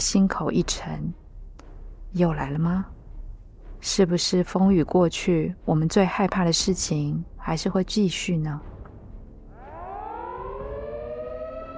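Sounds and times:
speech: 0.0 - 1.2, 2.1 - 3.0, 3.8 - 8.7
air raid siren wailing: 9.4 - 11.7.

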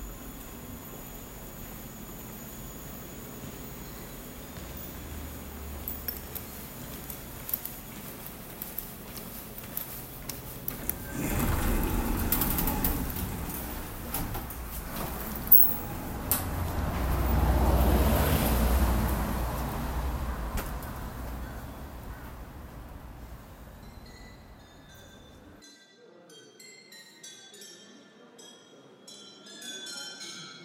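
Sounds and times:
street hum in Seoul: 0.0 - 25.6
vehicle passing: 10.7 - 23.9.

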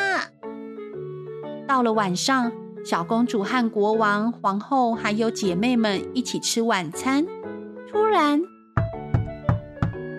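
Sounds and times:
speech: 1.7 - 7.4, 8.1 - 8.5
firm knocking on a door: 8.8 - 10.1.

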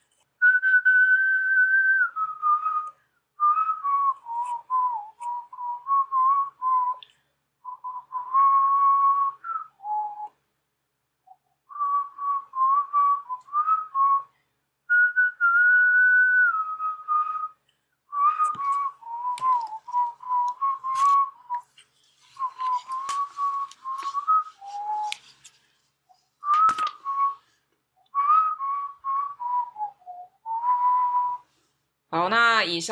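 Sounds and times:
person whistling a song tune: 0.4 - 10.4, 11.2 - 25.5, 26.4 - 31.7
speech: 32.2 - 32.8.

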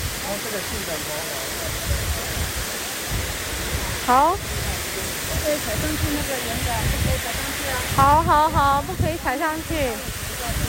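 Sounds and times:
waterfall: 0.0 - 10.6
speech: 0.3 - 2.2, 4.1 - 10.6.

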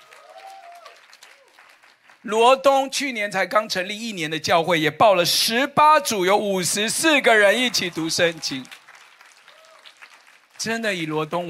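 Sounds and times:
crowd clapping and cheering: 0.0 - 2.3, 6.7 - 11.4
speech: 2.2 - 8.8, 10.6 - 11.4.

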